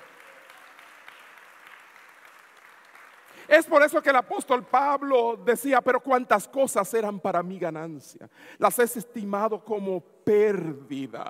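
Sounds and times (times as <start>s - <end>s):
audience applause: 0.0s - 3.5s
speech: 3.4s - 11.2s.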